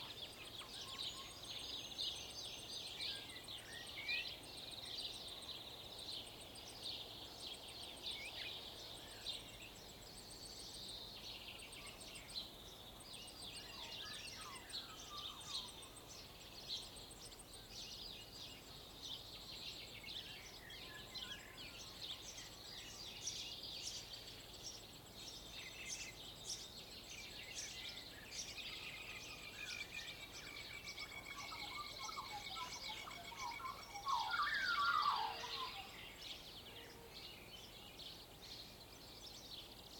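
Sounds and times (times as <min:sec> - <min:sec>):
dawn chorus birds on rural farmland in Waikato New Zealand: 0:00.0 - 0:39.9.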